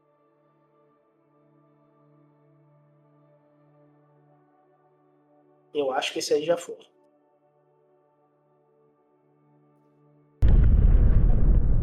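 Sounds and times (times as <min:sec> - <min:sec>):
speech: 0:05.7 - 0:07.0
droid explosion boom: 0:10.4 - 0:11.8
sustained rumbling roar after a droid explosion: 0:10.4 - 0:11.8.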